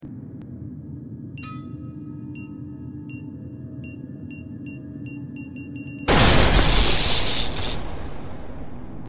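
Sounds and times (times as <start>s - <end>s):
grenade exploding: 6.1s - 9.0s.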